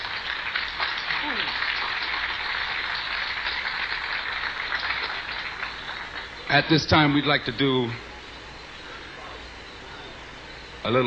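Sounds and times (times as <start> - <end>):
audience applause: 0.0 - 8.0
speech: 6.5 - 8.1, 10.8 - 11.0.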